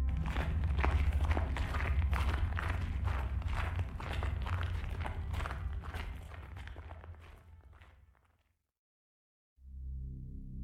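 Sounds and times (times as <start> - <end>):
footsteps crunching snow: 0.1 - 8.4.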